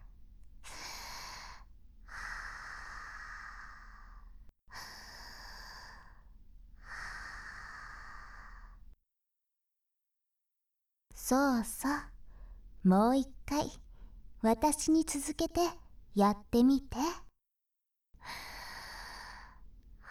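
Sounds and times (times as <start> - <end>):
deep slow breathing during a guided breathing exercise: 0.6 - 8.9, 12.2 - 12.8, 18.2 - 20.0
speech: 11.2 - 12.1, 12.8 - 13.8, 14.4 - 17.2, 18.2 - 18.5.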